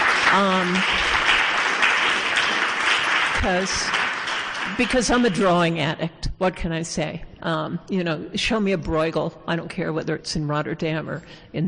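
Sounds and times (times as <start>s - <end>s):
audience applause: 0.0s - 5.5s
speech: 0.4s - 1.1s, 3.4s - 4.0s, 4.7s - 11.6s.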